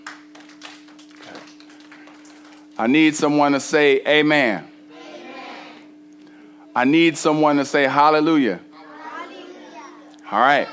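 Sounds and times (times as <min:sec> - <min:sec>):
scattered hand claps: 0:00.0 - 0:02.8
speech: 0:02.8 - 0:04.7, 0:06.8 - 0:08.7, 0:10.3 - 0:10.7.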